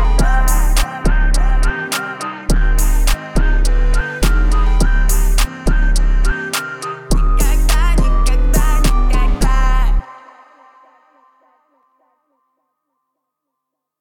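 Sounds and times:
37, 39 and 41 Hz low bass tone: 0.0 - 6.5, 7.1 - 10.0.

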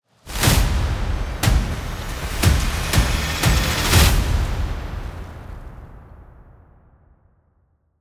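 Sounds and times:
drum: 0.4 - 4.9.

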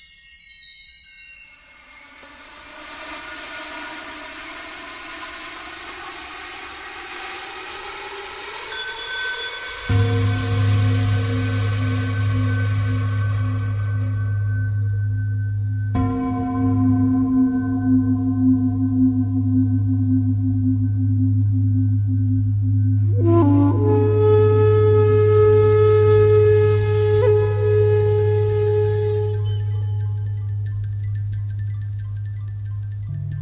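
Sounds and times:
bells: 0.0 - 4.8, 8.4 - 23.1, 27.6 - 33.4
gongs: 0.0 - 33.4
resonant percussion: 0.0 - 33.4.

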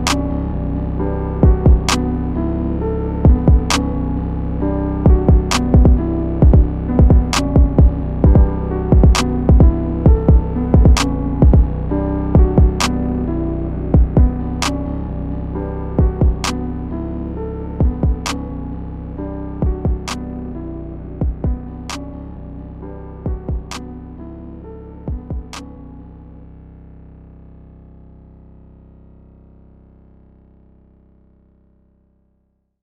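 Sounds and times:
instrumental music: 0.0 - 26.0.

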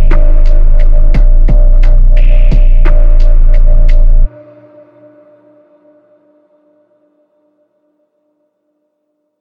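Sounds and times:
screwed low bass at 33, 35 and 37 Hz: 0.0 - 4.9.

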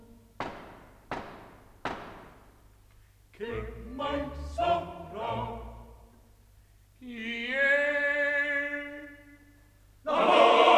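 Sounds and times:
faint low hum: 0.0 - 10.1
firm knocks on a door: 0.4 - 2.5
speech: 3.4 - 4.7.

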